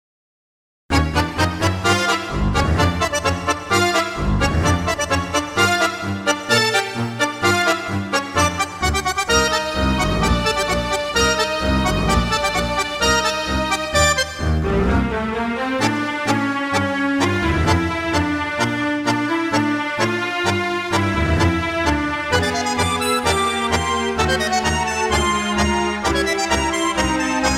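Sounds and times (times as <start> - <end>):
tango music: 0.9 - 27.5.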